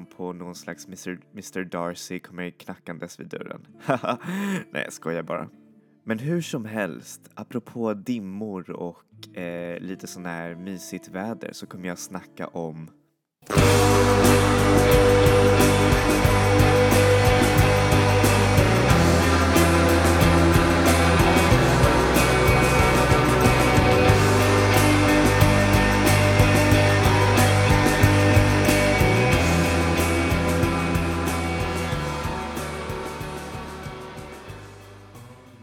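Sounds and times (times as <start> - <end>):
speech: 0.1 - 15.0
laughter: 3.8 - 4.7
shoegaze song with distorted guitars, bass and cymbals: 13.5 - 35.6.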